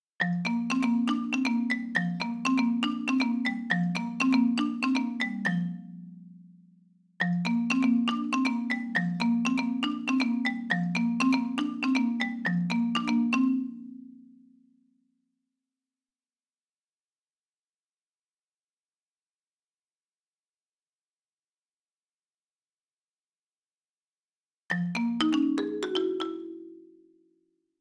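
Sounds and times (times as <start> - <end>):
marimba: 0.2 - 14.6, 24.7 - 27.4.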